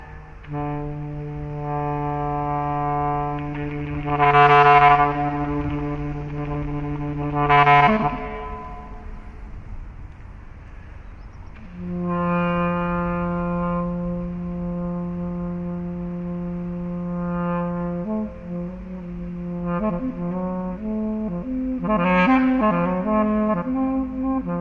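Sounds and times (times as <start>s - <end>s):
explorative clarinet music: 0.0s - 10.2s, 11.6s - 24.6s.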